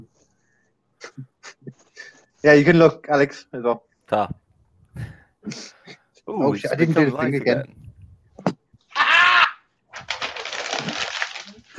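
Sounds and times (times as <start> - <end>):
speech: 2.4 - 4.4, 5.4 - 7.8
paper crumpling: 9.9 - 11.7.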